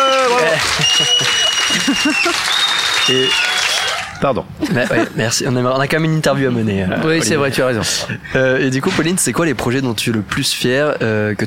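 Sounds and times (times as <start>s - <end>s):
laughter: 0.0s - 3.3s, 4.6s - 5.3s
audience applause: 0.0s - 4.2s
speech: 0.6s - 3.6s, 4.2s - 11.4s.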